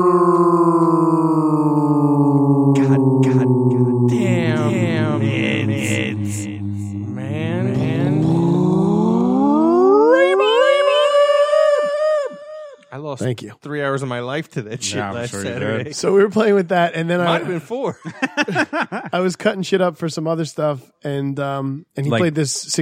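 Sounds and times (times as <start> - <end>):
speech: 0.0 - 0.4, 13.3 - 22.8
heavy reverb effect: 0.0 - 11.9
laughter: 14.5 - 16.4, 17.0 - 19.4.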